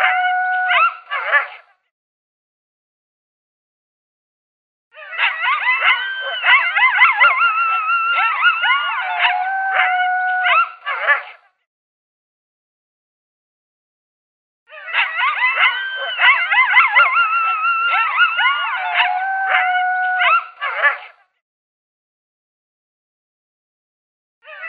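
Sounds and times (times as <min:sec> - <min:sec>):
coyote locator call of yips and howls: 0:00.0 - 0:01.6, 0:05.0 - 0:11.4, 0:14.7 - 0:21.2, 0:24.4 - 0:24.6.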